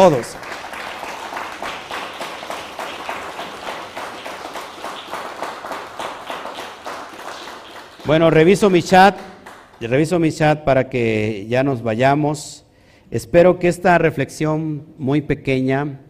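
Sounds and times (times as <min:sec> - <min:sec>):
speech: 0:00.0 - 0:00.5, 0:08.1 - 0:16.0
audience applauding: 0:00.0 - 0:10.0.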